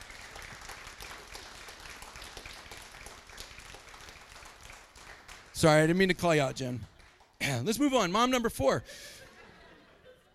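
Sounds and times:
audience round of applause: 0.0 - 7.4
speech: 5.6 - 9.1
laughter: 9.0 - 10.3.

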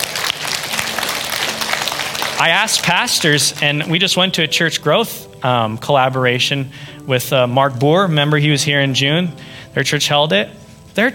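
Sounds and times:
audience hand clapping: 0.0 - 4.2
speech: 2.4 - 11.1.

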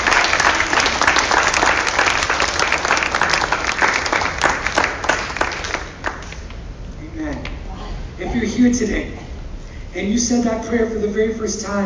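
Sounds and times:
audience clapping hands: 0.0 - 6.7
speech: 8.6 - 9.2, 10.0 - 11.8.

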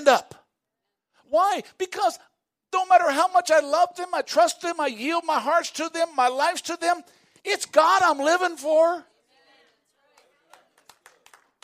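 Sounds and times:
speech: 0.0 - 0.4, 1.3 - 9.1
hand claps: 10.2 - 11.6.

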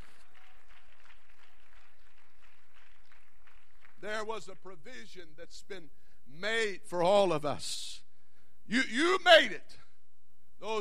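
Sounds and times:
audience clapping hands: 0.0 - 4.8
speech: 4.0 - 8.0, 8.7 - 9.8, 10.6 - 10.7.

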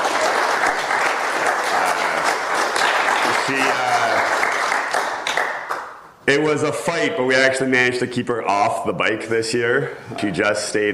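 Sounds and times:
audience applause: 0.0 - 5.9
speech: 6.3 - 10.9.

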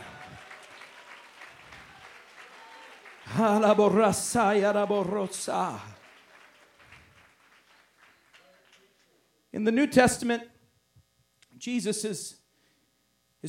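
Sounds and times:
audience clapping hands: 0.0 - 9.2
speech: 3.3 - 5.9, 9.6 - 10.5, 11.6 - 12.4.

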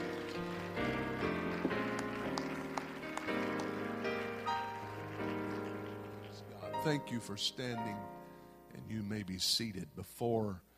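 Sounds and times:
audience clapping hands: 0.0 - 7.3
speech: 6.8 - 8.2, 8.9 - 10.7.

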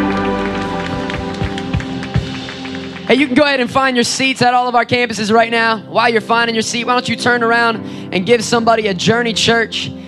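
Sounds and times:
audience clapping: 0.0 - 3.9
speech: 3.1 - 10.0.

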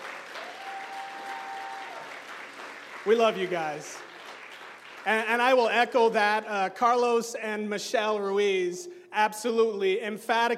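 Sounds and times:
audience applause: 0.0 - 5.5
speech: 3.0 - 4.1, 5.0 - 10.5.

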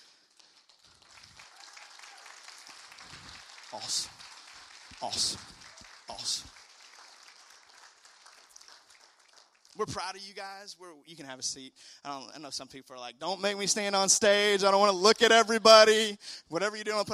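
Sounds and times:
audience clapping: 0.0 - 10.2
speech: 3.7 - 4.2, 5.0 - 6.6, 9.8 - 17.1.

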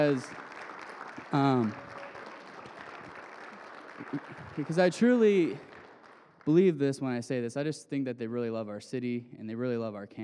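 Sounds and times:
speech: 0.0 - 0.4, 1.3 - 1.8, 4.1 - 5.7, 6.4 - 10.2
audience applause: 0.0 - 6.6
loud shouted cheer: 1.2 - 3.1.

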